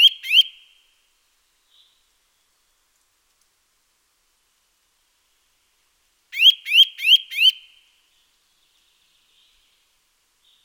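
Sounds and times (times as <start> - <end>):
Eurasian nuthatch Sitta europaea calling rising whistled notes: 0.0 - 0.5, 6.4 - 7.6.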